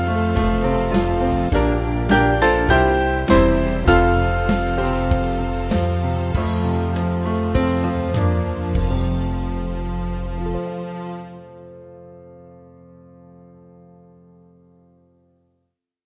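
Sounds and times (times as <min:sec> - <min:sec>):
band playing: 0:00.0 - 0:11.4.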